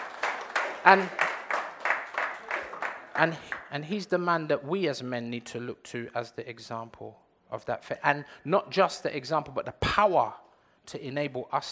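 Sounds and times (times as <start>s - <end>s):
round of applause: 0.0s - 3.8s
speech: 0.8s - 1.2s, 3.2s - 11.7s.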